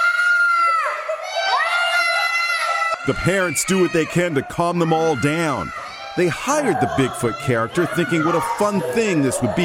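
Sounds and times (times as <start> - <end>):
frightened children screaming at party: 0.0 - 9.6
speech: 3.1 - 9.6.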